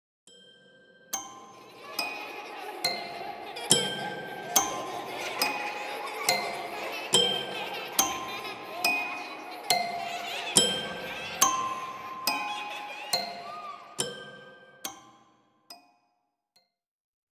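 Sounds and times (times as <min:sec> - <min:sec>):
horror toy piano: 0:01.1 - 0:15.3
children laughing: 0:01.2 - 0:14.9.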